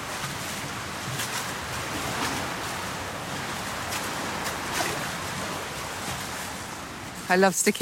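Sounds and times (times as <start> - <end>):
waves surging in a hollow space beneath a harbour quay: 0.0 - 7.7.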